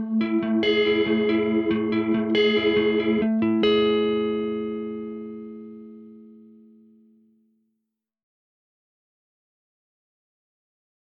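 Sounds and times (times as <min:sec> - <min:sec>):
guitar with chorus effect: 0:00.0 - 0:07.4.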